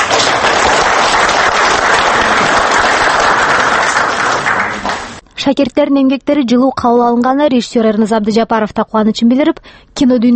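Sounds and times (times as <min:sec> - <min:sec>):
audience applause for student filmmakers: 0:00.0 - 0:05.2
speech: 0:05.4 - 0:10.3.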